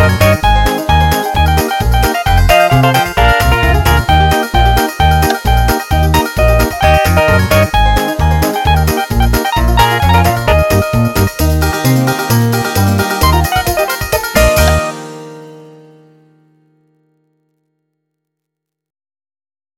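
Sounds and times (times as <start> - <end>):
bluegrass music: 0.0 - 15.4.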